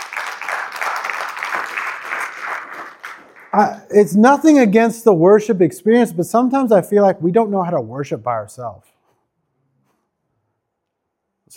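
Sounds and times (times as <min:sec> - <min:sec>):
crowd applause: 0:00.0 - 0:03.8
speech: 0:03.6 - 0:08.9.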